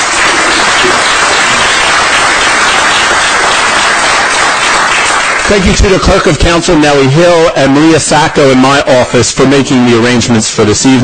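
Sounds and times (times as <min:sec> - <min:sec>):
crowd applauding: 0:00.0 - 0:06.5
speech: 0:05.5 - 0:11.0.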